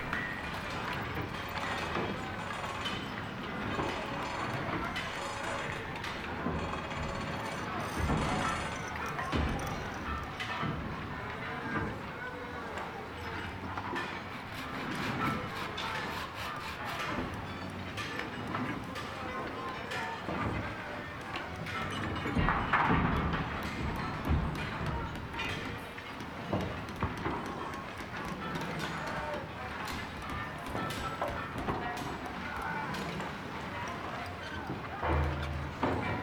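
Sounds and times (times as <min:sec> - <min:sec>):
shipyard ambience: 0:00.0 - 0:36.2.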